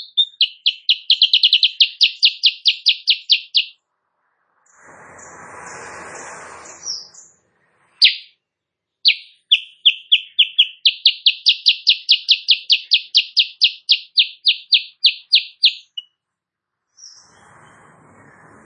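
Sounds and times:
sooty-headed bulbul song: 0.0s - 3.8s, 8.0s - 8.3s, 9.0s - 16.2s.

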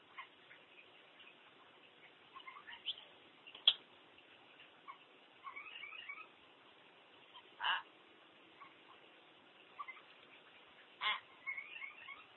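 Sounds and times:
common hill myna squawking: 2.3s - 3.0s, 4.9s - 6.3s, 7.4s - 7.9s, 11.0s - 12.3s.

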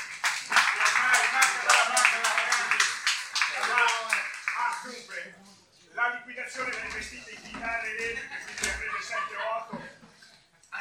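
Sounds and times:
applause at an evening gathering of colleagues and retirees: 0.0s - 5.2s
people talking: 0.7s - 10.7s
laughter: 6.8s - 10.7s.

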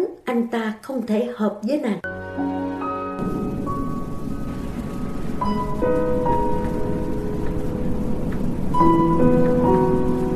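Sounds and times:
speech: 0.3s - 2.5s, 5.4s - 6.4s
rain pouring down as a storm builds: 3.2s - 10.3s.

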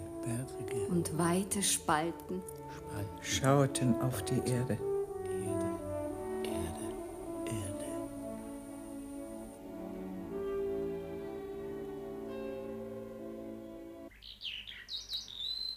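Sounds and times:
speech: 0.2s - 4.9s
sustained layered tonal drone: 2.7s - 14.1s
larks and nightingales in tree branches trilling and chirping: 13.5s - 15.7s.

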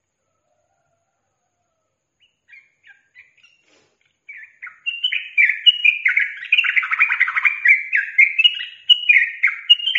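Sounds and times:
yellow-vented bulbul singing: 2.2s - 9.9s.

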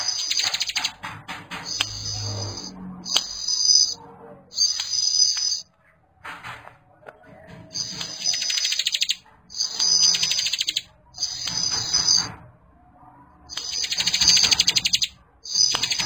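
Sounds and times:
bar-winged prinia buzzy trilled song: 0.0s - 1.0s, 1.7s - 5.7s, 7.7s - 12.3s, 13.5s - 16.0s.

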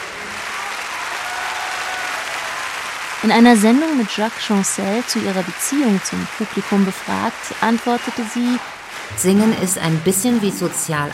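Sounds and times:
concert audience applauding: 0.0s - 10.8s
speech: 3.2s - 11.1s.

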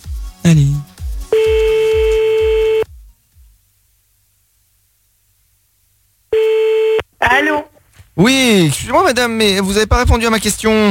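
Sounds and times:
speech: 0.4s - 0.8s, 8.2s - 10.9s
electronic telephone tone: 1.3s - 2.9s, 6.3s - 7.0s.

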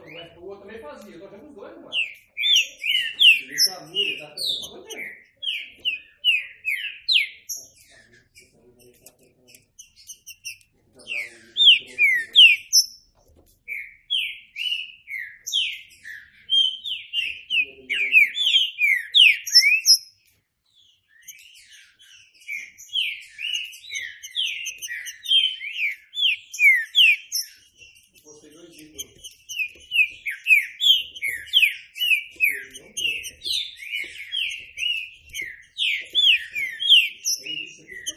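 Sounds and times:
speech: 0.6s - 2.2s
green-winged saltator song: 1.9s - 9.1s, 9.8s - 13.1s, 13.7s - 38.1s.

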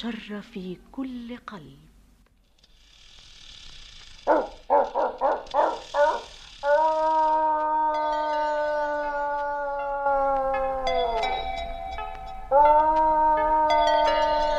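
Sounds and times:
speech: 0.0s - 1.9s
dog barking and howling: 4.2s - 11.6s, 12.5s - 14.5s.

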